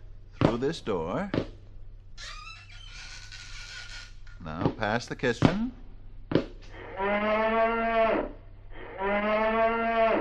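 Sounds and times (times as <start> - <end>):
speech: 0.5 - 1.5, 4.4 - 5.8, 7.0 - 8.3
cow mooing: 6.7 - 10.2.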